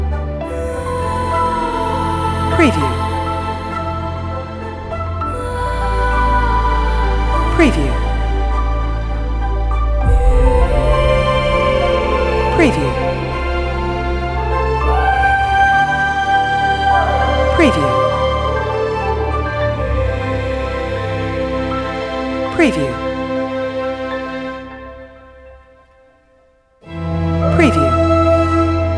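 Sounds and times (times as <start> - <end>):
emotional nostalgic dramatic strings film score: 0.0 - 26.1, 26.8 - 28.9
sad female voice: 0.5 - 4.1, 5.3 - 8.5, 10.6 - 19.2.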